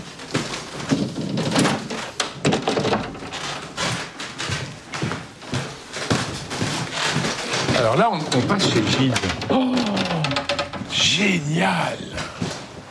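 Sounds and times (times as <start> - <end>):
narrow wooden door opening and closing: 0.5 - 4.6, 7.0 - 11.4
speech: 7.8 - 9.8, 11.2 - 12.3.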